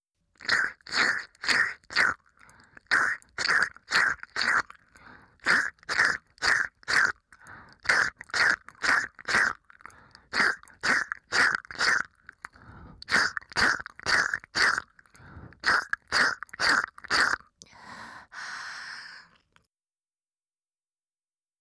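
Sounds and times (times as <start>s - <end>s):
ear licking in the right ear: 0.4s - 17.4s.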